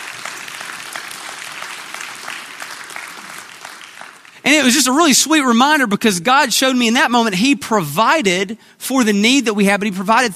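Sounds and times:
audience clapping: 0:00.0 - 0:05.0
speech: 0:04.5 - 0:10.3.

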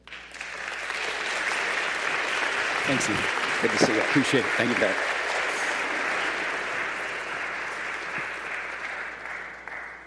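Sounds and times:
audience applause welcoming a guest speaker at a morning gathering: 0:00.0 - 0:10.0
speech: 0:02.9 - 0:05.1.

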